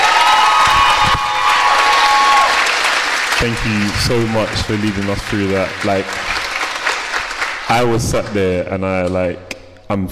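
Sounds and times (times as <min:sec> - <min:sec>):
scattered cheers and whoops: 0:00.0 - 0:02.7
audience round of applause: 0:00.0 - 0:08.5
speech: 0:03.4 - 0:06.4, 0:07.7 - 0:10.1.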